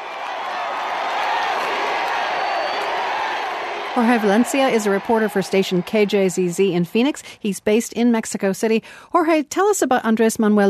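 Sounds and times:
crowd chanting at campaign rally: 0:00.0 - 0:06.6
speech: 0:04.0 - 0:10.6.

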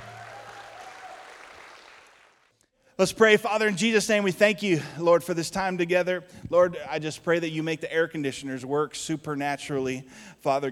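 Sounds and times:
audience applause: 0:00.0 - 0:02.5
speech: 0:03.0 - 0:10.6.

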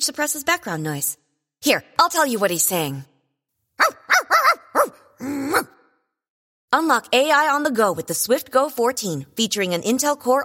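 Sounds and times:
speech: 0:00.0 - 0:03.1, 0:03.8 - 0:04.4, 0:05.2 - 0:05.8, 0:06.7 - 0:10.4
dog barking: 0:03.8 - 0:05.8.

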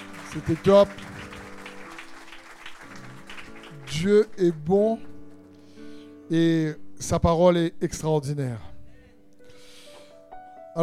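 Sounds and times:
church congregation applauding in praise during a Sunday service: 0:00.0 - 0:05.5
speech: 0:00.4 - 0:01.1, 0:03.9 - 0:05.1, 0:06.3 - 0:08.7.

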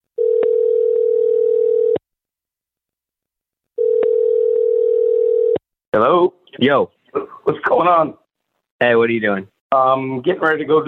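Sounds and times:
telephone ringback tone while a call connects: 0:00.2 - 0:02.0, 0:03.8 - 0:05.6
speech: 0:06.0 - 0:08.2, 0:08.8 - 0:10.8.

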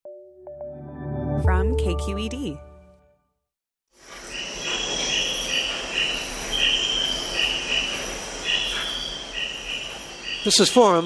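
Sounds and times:
speech: 0:01.4 - 0:02.7, 0:10.4 - 0:11.0
crickets chirring in a rainforest: 0:04.0 - 0:11.0.

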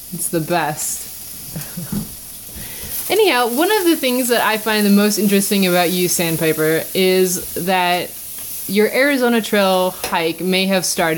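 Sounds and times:
vegetables sautéing for enchiladas in a home kitchen: 0:00.0 - 0:11.1
speech: 0:00.1 - 0:02.1, 0:03.2 - 0:11.1.

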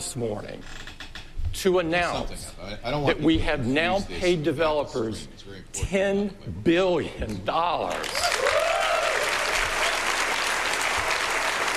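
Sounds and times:
speech: 0:00.0 - 0:00.8, 0:01.6 - 0:08.4
developers applauding at Apple keynote: 0:07.9 - 0:11.7.

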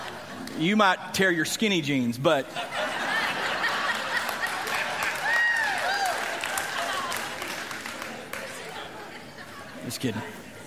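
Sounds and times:
speech: 0:00.6 - 0:03.0, 0:09.9 - 0:10.4
scattered audience laughter: 0:02.5 - 0:05.2
audience applause: 0:03.4 - 0:09.0
whoops: 0:04.7 - 0:07.4.

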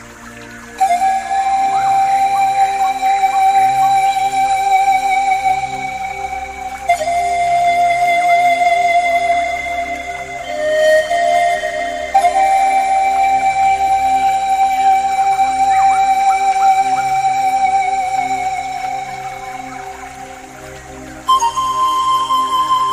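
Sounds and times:
pan flute playing sustained breathy notes: 0:00.0 - 0:22.9.

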